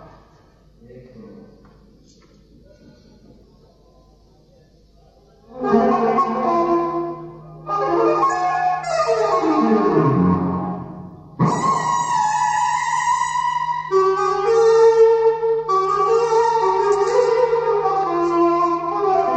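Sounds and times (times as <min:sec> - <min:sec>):
instrumental music: 0:05.5 - 0:19.3.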